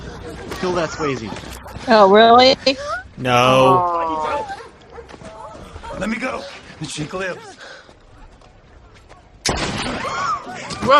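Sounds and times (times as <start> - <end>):
speech: 0.6 - 3.9, 6.0 - 7.5, 10.5 - 10.9
gunshot: 9.4 - 10.8.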